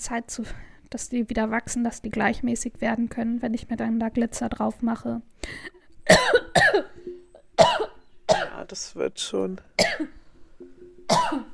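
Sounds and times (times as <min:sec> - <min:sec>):
speech: 0:00.0 - 0:06.9, 0:08.7 - 0:11.5
harsh coughing after choking from excitement: 0:06.1 - 0:06.9, 0:07.6 - 0:08.6, 0:09.8 - 0:10.2, 0:11.1 - 0:11.5.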